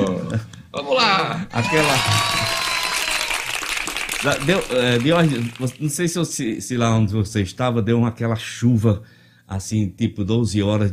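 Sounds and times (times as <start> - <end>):
speech: 0.3 - 2.4, 4.2 - 10.9
applause: 1.6 - 5.8.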